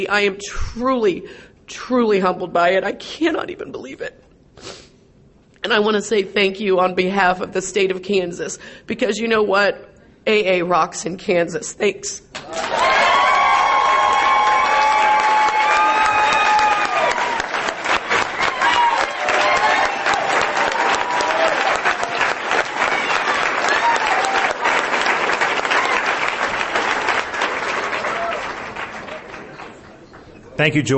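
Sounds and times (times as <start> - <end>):
speech: 0.0 - 4.7, 5.6 - 12.9, 30.6 - 30.9
audience applause: 12.4 - 30.3.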